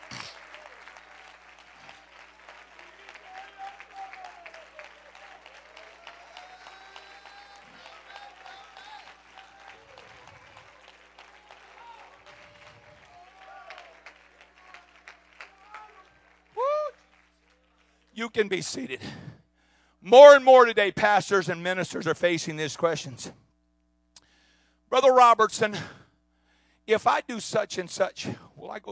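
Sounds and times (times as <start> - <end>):
audience clapping: 0.0 - 19.2
speech: 18.2 - 19.3, 20.1 - 23.4, 24.9 - 26.0, 26.9 - 28.8.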